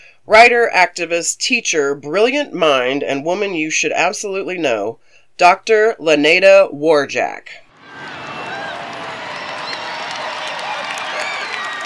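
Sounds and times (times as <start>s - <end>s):
speech: 0.2s - 8.2s
large crowd applause: 7.7s - 11.8s
voices cheering: 7.7s - 11.8s.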